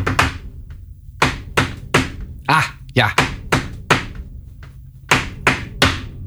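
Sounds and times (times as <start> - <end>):
drummer tapping a short ostinato rhythm pattern: 1.2 - 6.2
speech: 2.5 - 3.3.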